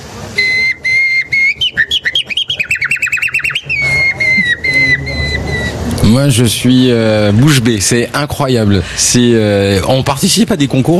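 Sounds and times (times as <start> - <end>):
person whistling an imitation of nightingale song: 0.4 - 5.8
speech: 6.1 - 10.9.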